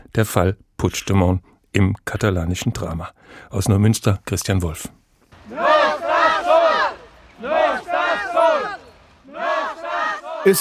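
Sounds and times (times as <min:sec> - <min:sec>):
speech: 0:00.2 - 0:05.7
Catalan protesters chanting slogans in Neumünster: 0:05.3 - 0:10.5.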